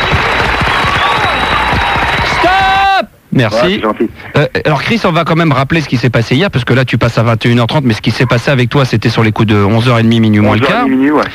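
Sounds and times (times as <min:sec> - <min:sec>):
studio audience applause greeting a guest on a French radio show: 0:00.0 - 0:03.0
speech: 0:03.4 - 0:11.3.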